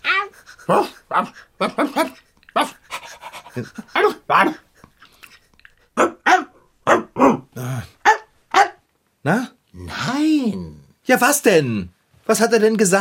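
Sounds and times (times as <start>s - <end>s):
dog barking and whimpering: 0.0s - 4.6s, 6.0s - 8.9s
dog panting: 0.0s - 5.9s
speech: 0.7s - 2.1s, 3.6s - 4.6s, 11.1s - 12.9s.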